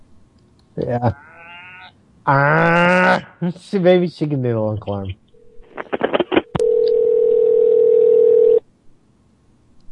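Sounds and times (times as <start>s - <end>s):
speech: 0.8s - 1.3s, 2.3s - 5.2s
telephone dial tone on crossed lines: 6.6s - 8.6s.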